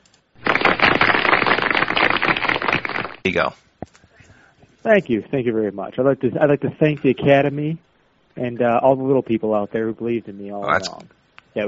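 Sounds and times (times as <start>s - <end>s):
applause sound effect: 0.4s - 3.2s
speech: 3.2s - 3.7s, 4.8s - 7.8s, 8.4s - 11.6s.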